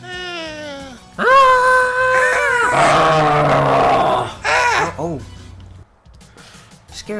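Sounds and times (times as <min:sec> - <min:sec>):
game sound effect growl: 0:02.1 - 0:05.0.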